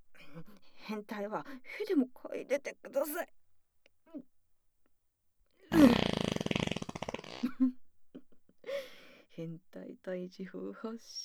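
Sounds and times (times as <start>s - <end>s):
speech: 0.9s - 3.4s, 4.1s - 4.3s, 7.5s - 7.8s, 9.4s - 11.2s
fart: 5.7s - 7.6s.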